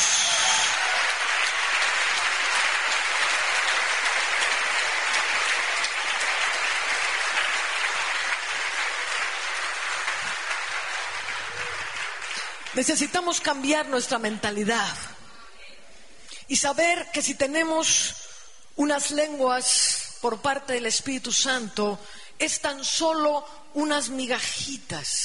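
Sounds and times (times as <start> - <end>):
audience applause: 0.0 - 12.8
speech: 12.8 - 15.1, 16.5 - 18.2, 18.8 - 25.2.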